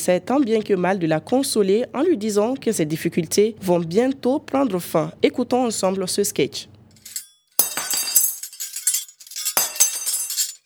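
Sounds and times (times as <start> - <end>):
speech: 0.0 - 6.8
glass or dishes shattering in a home: 7.0 - 10.6
tinkling and clinking glass debris: 7.0 - 10.6.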